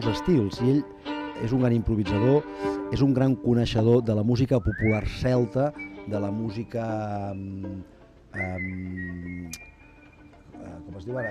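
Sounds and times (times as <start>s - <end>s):
speech: 0.0s - 9.7s, 10.6s - 11.2s
folk musician whistling: 4.6s - 10.4s.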